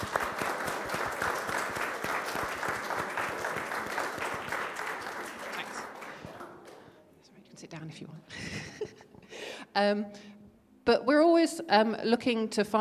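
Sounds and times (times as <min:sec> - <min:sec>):
audience applause: 0:00.0 - 0:07.0
speech: 0:07.9 - 0:09.0, 0:09.8 - 0:10.3, 0:10.9 - 0:12.7.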